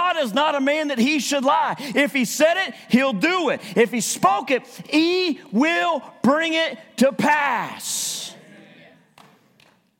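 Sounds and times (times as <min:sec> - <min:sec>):
speech: 0:00.2 - 0:08.3
audience hand claps: 0:09.1 - 0:09.9.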